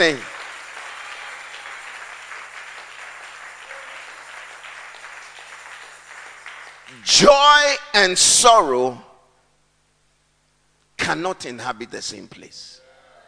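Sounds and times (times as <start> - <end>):
speech: 0.0 - 0.3, 7.0 - 9.1, 11.1 - 12.8
audience clapping: 0.0 - 7.4.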